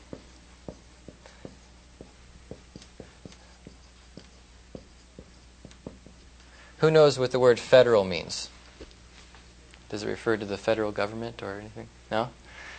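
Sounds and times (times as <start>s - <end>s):
writing on a board during a lecture: 0.0s - 6.3s
speech: 6.8s - 8.6s, 9.9s - 12.4s.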